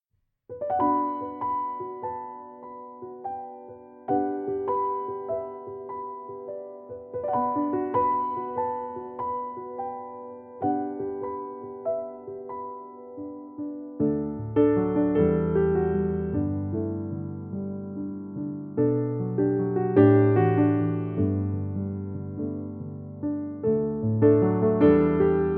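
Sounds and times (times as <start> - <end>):
piano music: 0.5 - 25.5.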